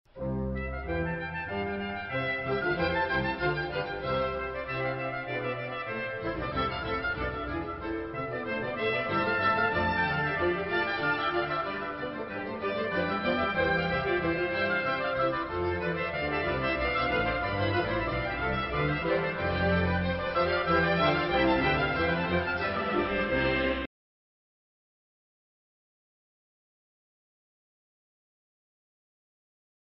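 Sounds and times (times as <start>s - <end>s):
trumpet: 0.2s - 23.9s.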